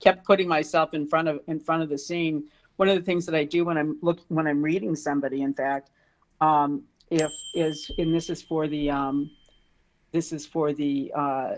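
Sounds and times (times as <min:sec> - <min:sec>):
speech: 0:00.0 - 0:09.4, 0:10.1 - 0:11.5
smartwatch notification ding: 0:07.2 - 0:09.4.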